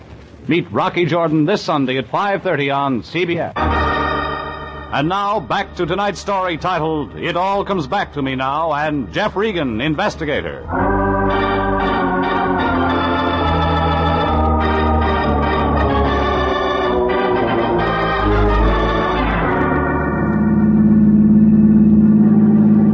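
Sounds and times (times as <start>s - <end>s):
speech: 0.5s - 3.7s, 4.9s - 10.8s
music: 3.6s - 22.9s
taxi cab engine accelerating: 19.4s - 22.9s.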